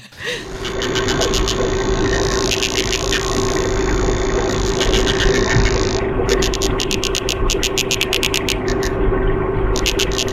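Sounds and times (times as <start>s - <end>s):
fish vocalizing with drill-like buzzing: 0.1s - 9.1s, 9.7s - 10.3s.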